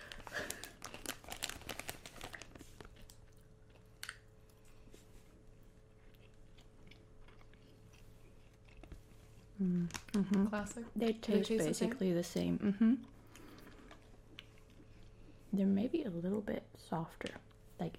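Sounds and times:
bag of fuzzy rings snacks crinkling open: 0:00.0 - 0:03.2
speech: 0:09.6 - 0:13.2, 0:15.6 - 0:17.9.

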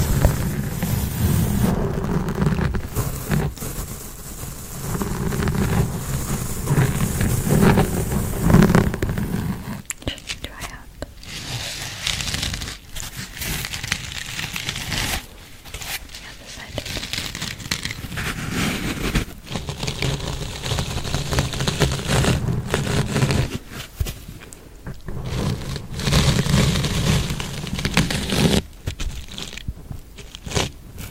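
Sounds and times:
heavy low rumble: 0:00.0 - 0:10.2
rough mic scratching: 0:00.0 - 0:31.0.

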